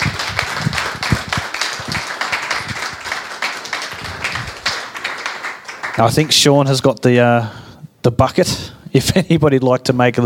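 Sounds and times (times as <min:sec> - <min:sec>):
audience applause: 0:00.0 - 0:06.6
speech: 0:06.0 - 0:10.2.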